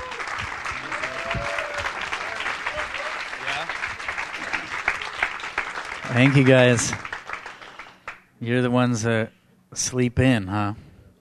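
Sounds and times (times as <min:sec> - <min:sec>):
audience applause greeting a guest invited on stage: 0:00.0 - 0:08.2
speech: 0:06.2 - 0:07.1, 0:08.4 - 0:10.8.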